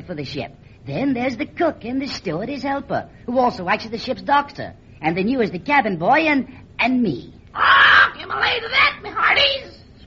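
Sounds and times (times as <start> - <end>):
speech: 0.1 - 9.8
ship's parrot mascot squawking: 7.6 - 9.8.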